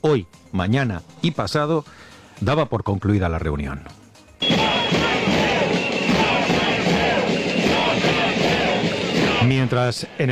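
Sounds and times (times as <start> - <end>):
speech: 0.0 - 4.5, 9.5 - 10.3
protest crowd chanting a slogan: 4.4 - 9.8.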